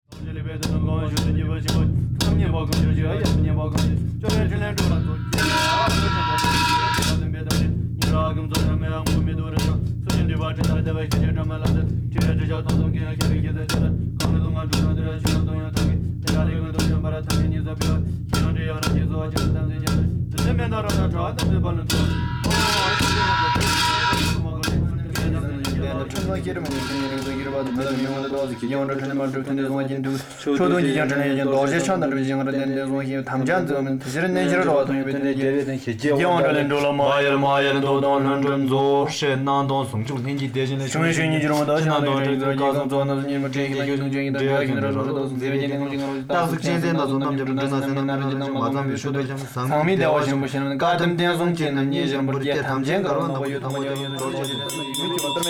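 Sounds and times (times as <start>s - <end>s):
chanting: 0.1s - 55.4s.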